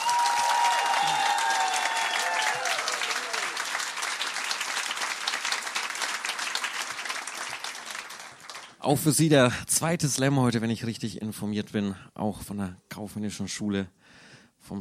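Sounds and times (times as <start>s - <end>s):
applause: 0.0s - 8.9s
speech: 8.9s - 14.8s.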